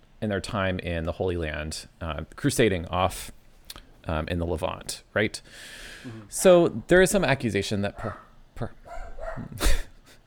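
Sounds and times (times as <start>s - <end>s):
speech: 0.2s - 8.8s, 9.4s - 9.8s
dog being dog-sat barking: 6.1s - 9.6s.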